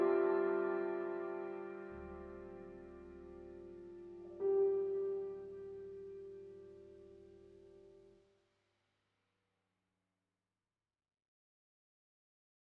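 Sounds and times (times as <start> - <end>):
dramatic piano: 0.0 - 8.1.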